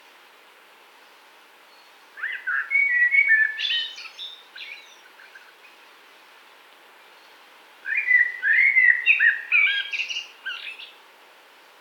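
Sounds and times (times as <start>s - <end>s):
common blackbird song: 1.7s - 5.8s, 7.0s - 11.0s.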